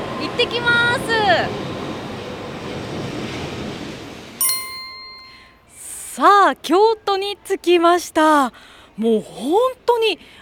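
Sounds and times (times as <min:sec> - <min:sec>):
speech: 0:00.3 - 0:01.7, 0:06.2 - 0:10.4
Shinkansen bullet train arriving at the station: 0:04.4 - 0:05.6
ringing chime: 0:04.4 - 0:05.9.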